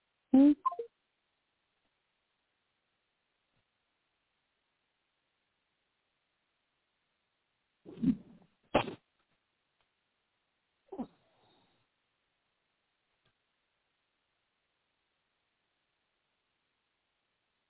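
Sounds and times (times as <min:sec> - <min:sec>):
phone keypad touch-tone beeps: 0:00.6 - 0:00.9.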